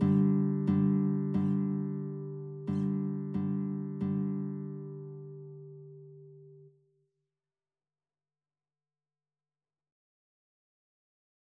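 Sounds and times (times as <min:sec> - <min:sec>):
guitar duet: 0:00.0 - 0:06.7.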